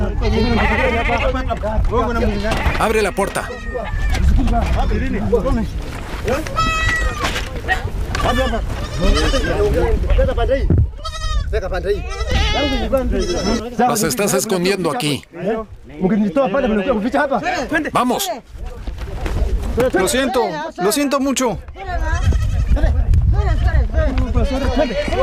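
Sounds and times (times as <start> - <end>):
goats bleating: 0.0 - 1.5, 2.2 - 5.0, 6.4 - 7.4, 8.1 - 9.9, 11.0 - 14.1, 21.9 - 23.7
speech: 0.3 - 6.7, 7.7 - 10.8, 11.5 - 18.8, 19.8 - 22.9, 24.1 - 25.2.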